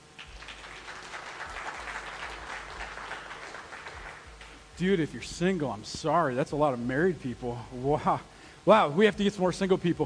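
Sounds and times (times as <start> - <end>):
audience round of applause: 0.0 - 4.6
speech: 4.8 - 10.0.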